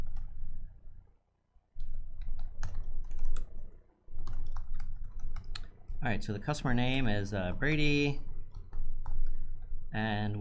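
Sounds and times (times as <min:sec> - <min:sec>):
typing a command on a computer keyboard: 0:00.0 - 0:00.4, 0:01.8 - 0:06.0, 0:08.2 - 0:09.7
speech: 0:06.0 - 0:08.3, 0:09.9 - 0:10.3.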